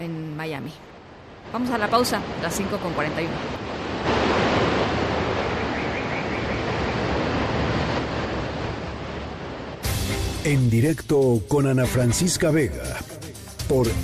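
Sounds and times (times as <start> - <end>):
beach waves and surf: 0.0 - 10.7
speech: 0.4 - 3.7, 10.4 - 13.1, 13.7 - 14.0.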